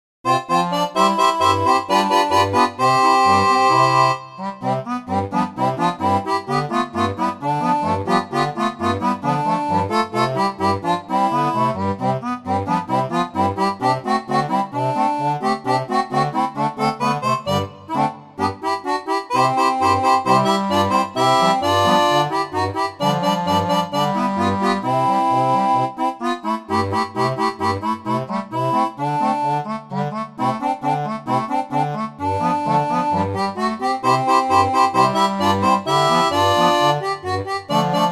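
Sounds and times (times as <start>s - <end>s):
barrel organ: 0.3s - 38.1s.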